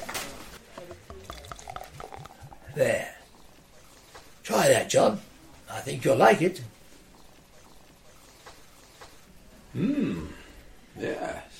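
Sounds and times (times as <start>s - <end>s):
Trappist beer poured into a glass: 0.7s - 3.2s
soft glassy clinks: 0.8s - 2.8s
speech: 2.8s - 3.1s, 4.5s - 6.8s.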